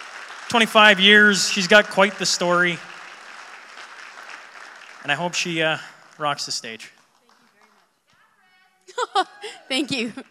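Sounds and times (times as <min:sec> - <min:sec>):
audience applause: 0:00.0 - 0:07.8
laughter: 0:00.5 - 0:02.8, 0:05.1 - 0:06.7, 0:08.9 - 0:10.2
speech: 0:00.5 - 0:02.9, 0:05.1 - 0:07.0, 0:09.0 - 0:10.2.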